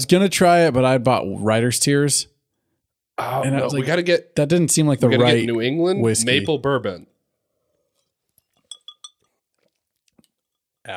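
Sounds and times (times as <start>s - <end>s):
speech: 0.0s - 2.3s, 3.2s - 7.1s
ice balls clinking against a whiskey glass: 8.6s - 9.3s.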